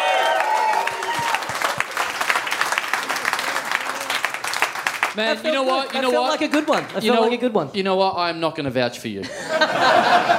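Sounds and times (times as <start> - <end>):
audience applause: 0.0 - 7.1
speech: 5.2 - 10.3
laughter: 9.2 - 10.3.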